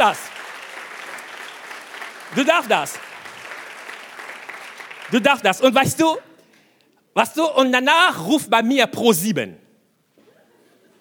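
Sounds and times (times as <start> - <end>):
speech: 0.0 - 0.3, 2.3 - 3.1, 5.1 - 6.3, 7.2 - 9.6
audience applause: 0.0 - 5.7.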